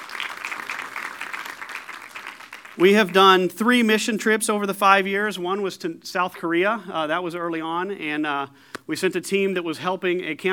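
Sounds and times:
audience applause: 0:00.0 - 0:03.2
speech: 0:02.8 - 0:10.5.

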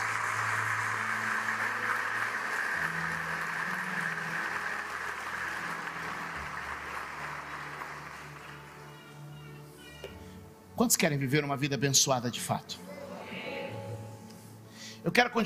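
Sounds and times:
crowd applause: 0:00.0 - 0:09.3
speech: 0:10.8 - 0:12.9, 0:15.0 - 0:15.4.

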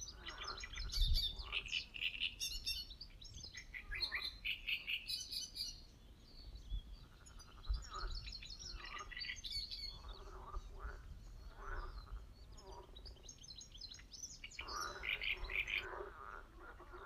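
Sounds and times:
chorus of croaking frogs at an old pond: 0:00.0 - 0:02.5, 0:07.0 - 0:13.3, 0:13.9 - 0:17.0
Great reed warblers chattering at an old pond: 0:00.0 - 0:17.0.

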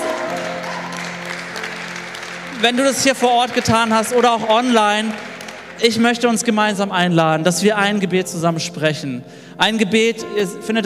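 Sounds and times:
audience applause: 0:00.0 - 0:06.6
speech: 0:02.6 - 0:10.8.

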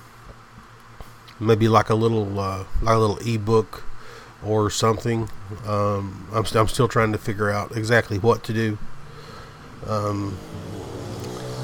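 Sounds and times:
speech: 0:01.4 - 0:08.9, 0:09.8 - 0:10.7
dirt bikes riding up and down outside: 0:09.1 - 0:11.6.

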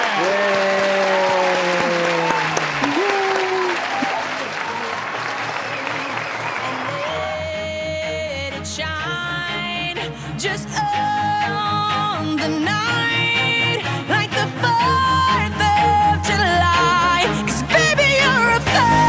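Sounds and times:
audience applause: 0:00.0 - 0:07.8
music playing: 0:03.9 - 0:19.0.

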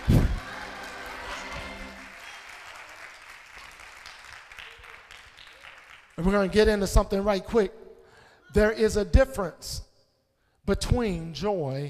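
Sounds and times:
audience clapping hands: 0:00.0 - 0:06.8
speech: 0:06.2 - 0:07.8, 0:08.5 - 0:09.9, 0:10.6 - 0:11.8.

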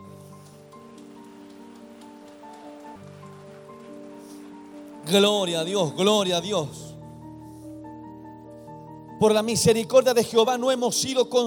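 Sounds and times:
loud applause: 0:00.0 - 0:06.9
speech: 0:05.0 - 0:06.8, 0:09.2 - 0:11.4.

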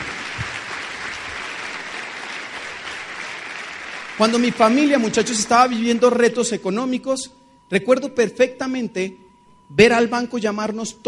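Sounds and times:
audience applause: 0:00.0 - 0:06.0
speech: 0:04.2 - 0:11.0.

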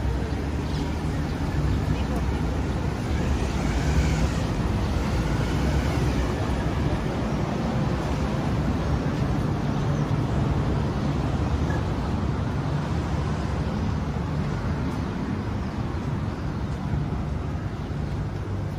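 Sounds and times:
faint voices murmuring: 0:00.0 - 0:07.2
traffic rumbling on a Tel Aviv street: 0:00.0 - 0:18.7.

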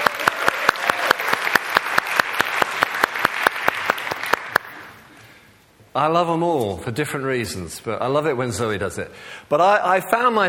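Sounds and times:
audience clapping: 0:00.0 - 0:05.1
speech: 0:06.0 - 0:10.4.

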